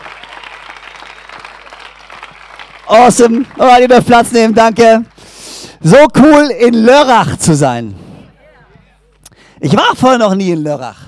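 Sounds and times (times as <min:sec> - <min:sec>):
audience applause: 0:00.0 - 0:05.4
speech: 0:02.9 - 0:05.1, 0:05.8 - 0:08.0, 0:09.6 - 0:11.0.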